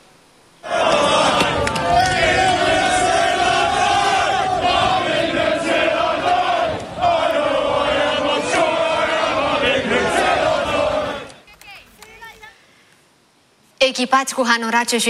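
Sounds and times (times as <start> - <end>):
masked protesters shouting: 0.6 - 12.6
speech: 14.0 - 15.0.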